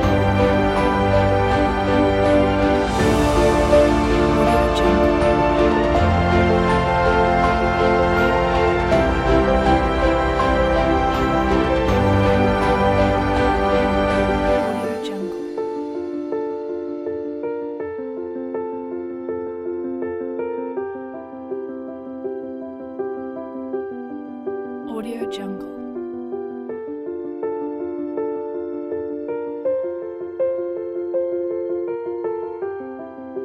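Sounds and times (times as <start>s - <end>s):
strings: 0.0s - 16.4s
inspired piano: 0.0s - 33.4s.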